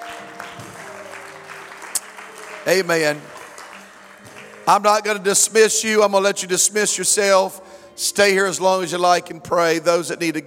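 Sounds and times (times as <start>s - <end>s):
church congregation clapping hands: 0.0s - 7.3s
speech: 2.6s - 3.4s, 4.7s - 10.4s.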